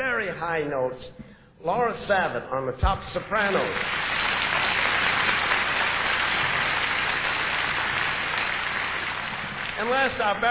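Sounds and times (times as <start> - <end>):
speech: 0.4 - 4.0, 9.8 - 10.4
crowd applause: 3.5 - 10.4.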